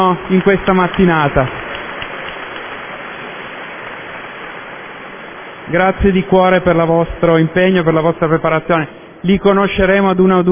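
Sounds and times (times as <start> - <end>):
speech: 0.0 - 1.6, 5.7 - 10.5
audience applause: 0.0 - 3.6.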